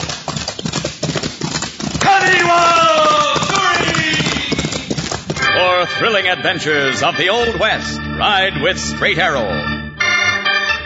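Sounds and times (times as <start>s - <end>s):
palomino horse galloping hooves: 0.0s - 7.5s
man shouting: 2.0s - 4.8s
speech: 6.0s - 9.7s.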